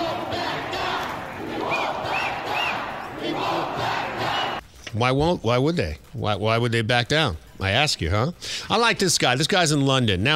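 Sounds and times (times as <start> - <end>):
high whistles: 0.0 - 4.6
large crowd cheering: 0.0 - 4.6
speech: 4.9 - 10.3.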